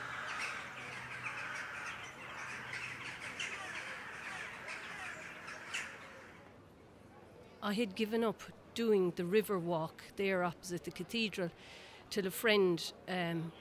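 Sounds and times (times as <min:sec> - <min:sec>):
flock of birds cawing as they fly: 0:00.0 - 0:06.4
speech: 0:07.6 - 0:13.5.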